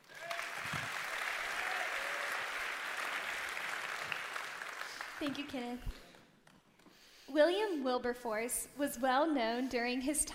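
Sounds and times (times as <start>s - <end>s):
church audience applauding a speaker: 0.0s - 6.5s
speech: 5.2s - 6.1s, 7.3s - 10.3s.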